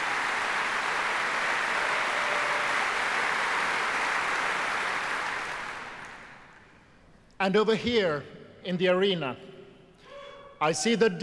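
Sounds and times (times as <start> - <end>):
audience applause at a concert for a choir: 0.0 - 6.6
speech: 7.4 - 9.5, 10.6 - 11.2.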